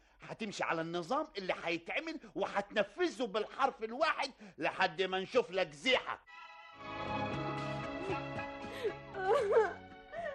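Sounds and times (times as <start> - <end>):
speech: 0.3 - 7.0
woman crying: 7.8 - 10.3.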